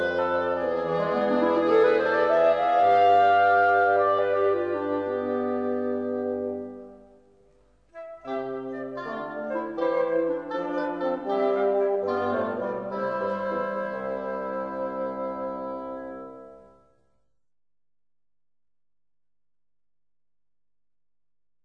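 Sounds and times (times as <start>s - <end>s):
woodwind section of a symphony orchestra: 0.0s - 7.3s, 7.9s - 17.0s.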